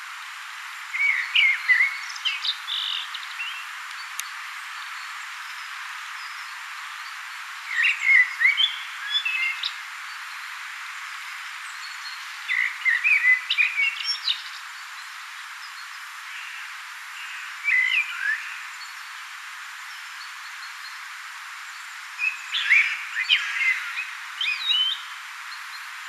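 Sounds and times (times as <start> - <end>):
common blackbird singing: 1.0 - 3.6, 7.7 - 9.8, 11.8 - 14.6, 22.2 - 26.0.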